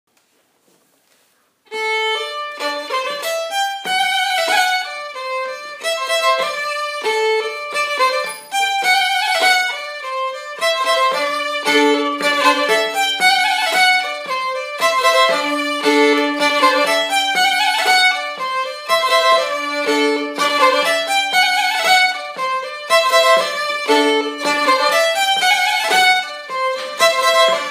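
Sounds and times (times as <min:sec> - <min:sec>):
polka on violins: 0:01.7 - 0:27.6.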